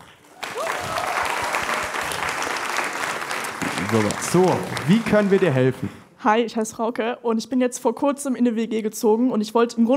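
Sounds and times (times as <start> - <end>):
audience applause: 0.0 - 6.0
speech: 3.9 - 9.9.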